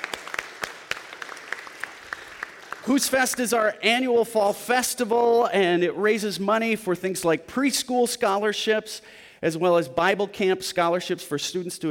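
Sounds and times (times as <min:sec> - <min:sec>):
church audience applauding the organisers of the annual fall festival: 0:00.0 - 0:03.7
speech: 0:02.9 - 0:11.8.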